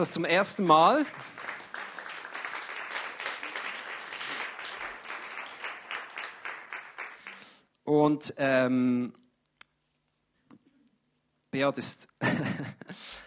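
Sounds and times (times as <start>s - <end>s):
speech: 0.0s - 1.5s, 7.9s - 9.2s, 11.6s - 13.2s
audience applause: 0.7s - 7.6s
laughter: 12.2s - 13.0s.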